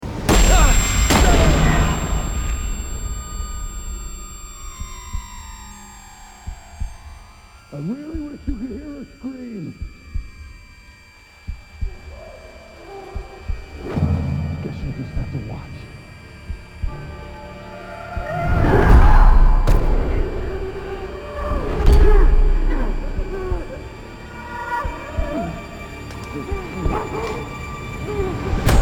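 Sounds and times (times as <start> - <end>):
tinnitus ringing tone: 0.1 - 27.3.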